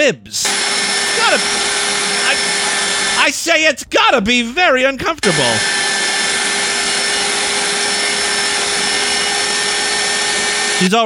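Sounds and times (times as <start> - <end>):
speech: 0.0 - 5.8, 10.8 - 11.0
vacuum sucking air from bag: 0.4 - 3.3, 5.2 - 10.8.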